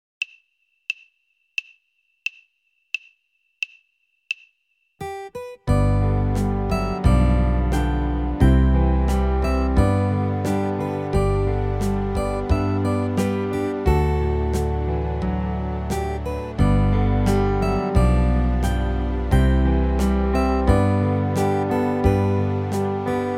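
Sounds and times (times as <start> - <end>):
guitar hymn: 5.7 - 23.3.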